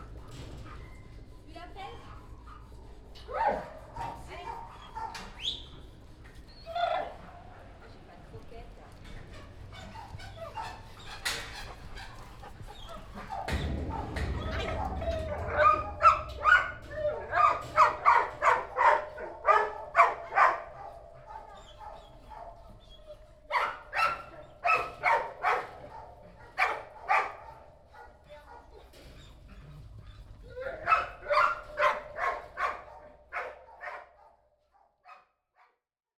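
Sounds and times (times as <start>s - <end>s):
dog barking and yelping excitedly: 3.3s - 5.4s, 13.2s - 22.8s, 23.5s - 28.9s, 30.5s - 35.8s.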